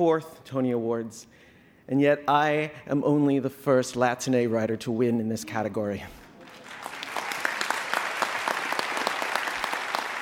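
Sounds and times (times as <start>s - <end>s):
speech: 0.0s - 6.2s
audience clapping: 6.2s - 10.2s.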